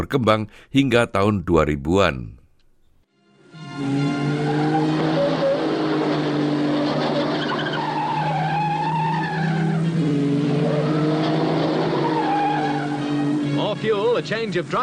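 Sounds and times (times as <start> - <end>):
speech: 0.0 - 2.4, 13.8 - 14.8
race car engines roaring: 3.4 - 14.8
race car tires squealing round a corner: 3.4 - 14.8.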